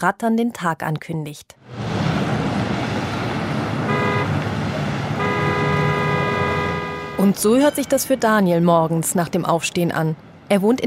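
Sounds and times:
speech: 0.0 - 1.9, 7.2 - 10.8
inner-city morning street traffic rumble: 1.6 - 10.8
car horn honking: 3.8 - 4.4, 5.1 - 7.3.

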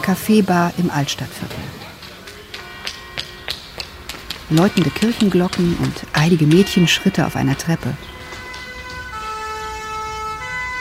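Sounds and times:
speech: 0.0 - 1.7, 4.5 - 8.1
police sirens: 2.5 - 10.7.

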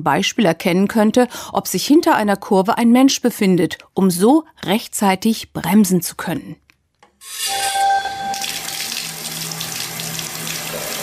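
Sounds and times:
speech: 0.0 - 6.6
water running from a tap: 7.3 - 11.0.

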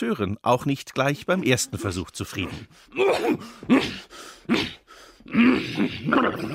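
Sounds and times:
speech: 0.0 - 6.5
human voice imitating a dragon landing and sneezing: 1.3 - 6.5.

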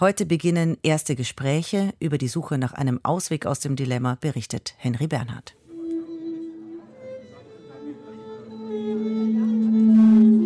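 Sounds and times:
speech: 0.0 - 5.6
amplifier feedback: 5.7 - 10.4
violinist warming up: 5.7 - 10.4.

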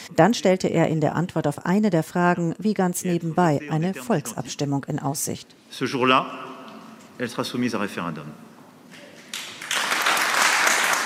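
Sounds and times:
speech: 0.1 - 6.5, 7.2 - 8.5
audience applause after Macron's climate referendum announcement: 9.2 - 11.0.

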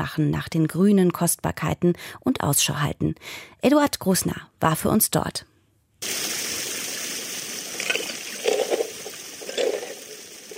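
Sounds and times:
speech: 0.0 - 6.3
flowing stream water rushing: 6.0 - 10.5
gravel and sand scraping across a perforated metal sheet in a stream: 7.8 - 10.5.

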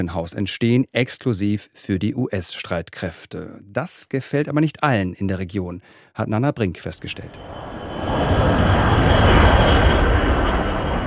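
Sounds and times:
speech: 0.0 - 8.4
jet aircraft turbines at air base: 7.0 - 11.0.

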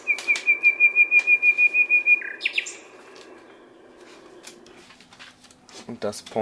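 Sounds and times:
one-year-old male nightingale singing: 0.0 - 4.7.

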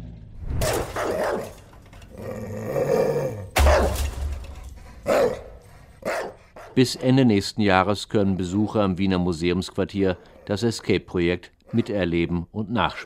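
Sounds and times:
guard dogs barking: 0.6 - 1.6, 3.6 - 7.2
speech: 6.8 - 13.0.

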